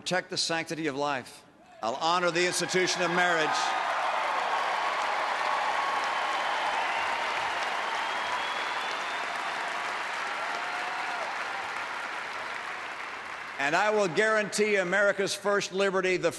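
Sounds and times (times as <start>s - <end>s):
speech: 0.0s - 3.9s, 13.7s - 16.3s
crowd applause at a speech: 2.3s - 14.4s.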